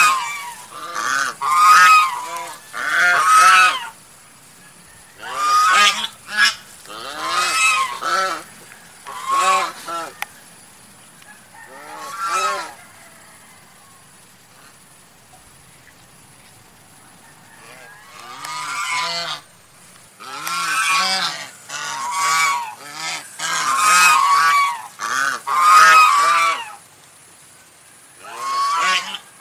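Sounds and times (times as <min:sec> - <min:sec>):
domestic goose honking: 0:00.0 - 0:04.0, 0:05.2 - 0:10.3, 0:11.6 - 0:12.8, 0:17.6 - 0:19.5, 0:20.2 - 0:26.8, 0:28.2 - 0:29.4.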